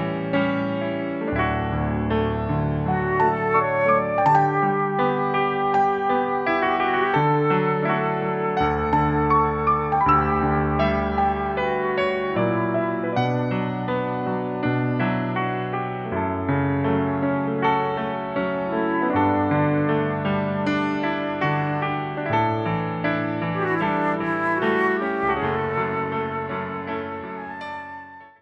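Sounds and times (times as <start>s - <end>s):
piano: 0.0s - 28.4s
flute: 2.8s - 14.7s, 18.7s - 21.9s, 23.3s - 28.4s.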